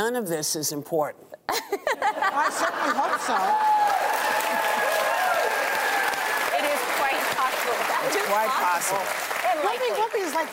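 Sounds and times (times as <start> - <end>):
speech: 0.0 - 4.8, 7.7 - 10.5
laughter: 1.5 - 5.2
large audience applauding: 2.9 - 10.5
crowd whooping: 3.0 - 7.2.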